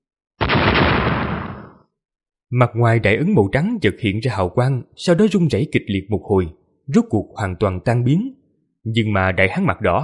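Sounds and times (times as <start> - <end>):
explosive blasts: 0.4 - 1.9
speech: 2.5 - 10.0.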